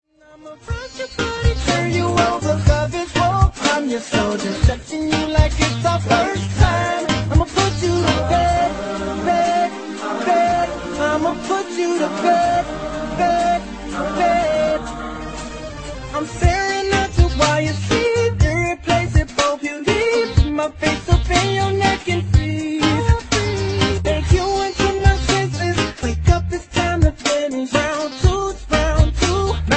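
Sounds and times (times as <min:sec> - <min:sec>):
reggae remix music: 0:00.2 - 0:29.7.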